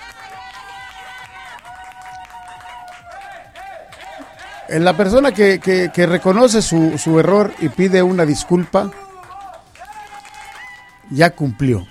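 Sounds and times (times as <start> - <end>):
audience applause: 0.0 - 11.0
speech: 4.7 - 9.0, 11.1 - 11.8.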